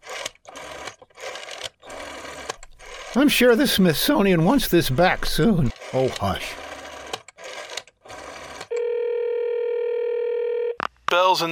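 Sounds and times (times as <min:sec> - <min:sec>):
telephone being dialed: 0:00.1 - 0:10.6
speech: 0:03.1 - 0:06.6, 0:11.3 - 0:11.5
steady electronic phone tone: 0:08.7 - 0:10.8.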